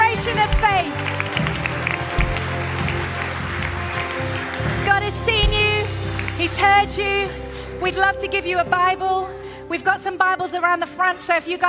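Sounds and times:
audience applause: 0:00.0 - 0:06.6
speech: 0:07.8 - 0:11.6.

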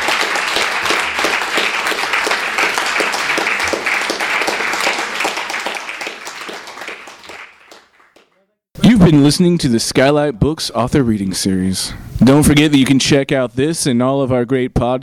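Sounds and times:
audience applause: 0:00.0 - 0:08.5
speech: 0:09.1 - 0:15.0.

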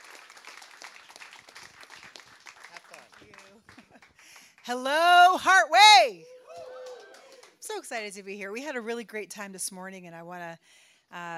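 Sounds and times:
audience applause welcoming a speaker: 0:00.0 - 0:04.5, 0:06.5 - 0:07.6
speech: 0:04.7 - 0:06.3, 0:07.7 - 0:11.3.

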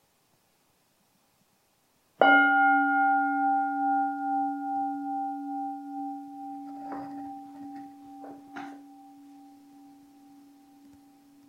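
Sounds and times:
meditation gong being rung: 0:02.2 - 0:11.4.

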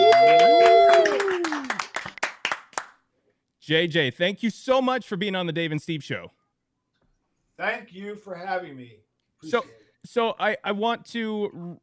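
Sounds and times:
talk show audience clapping to welcome a guest: 0:00.0 - 0:03.0
speech: 0:03.7 - 0:06.4, 0:07.6 - 0:11.8.

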